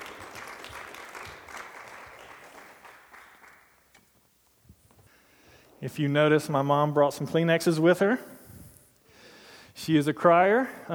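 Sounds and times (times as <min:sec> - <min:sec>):
audience applause welcoming a speaker's parents onto the stage: 0:00.0 - 0:03.8
speech: 0:05.8 - 0:08.4, 0:09.8 - 0:10.9.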